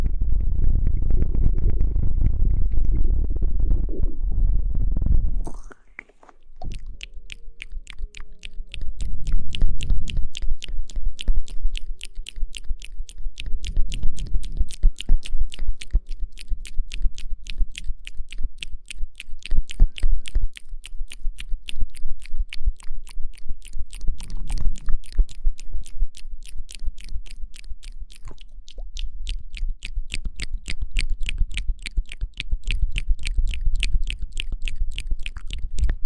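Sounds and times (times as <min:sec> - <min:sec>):
low muffled rumble: 0:00.0 - 0:06.0
rapid wet mouth clicks: 0:05.4 - 0:36.0.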